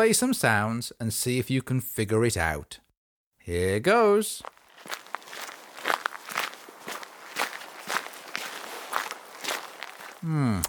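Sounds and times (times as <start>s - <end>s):
speech: 0.0s - 2.8s, 3.4s - 5.0s, 10.2s - 10.6s
footsteps of someone out for a walk: 4.4s - 10.2s.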